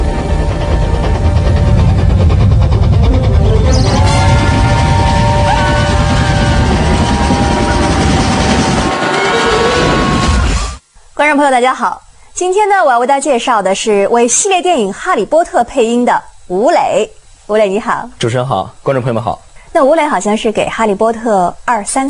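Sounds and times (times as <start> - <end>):
approaching train: 0.0 - 10.8
speech: 11.3 - 22.0.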